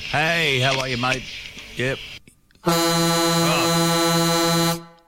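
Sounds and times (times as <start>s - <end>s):
speech: 0.2s - 3.2s
loud vehicle horn: 2.6s - 5.0s.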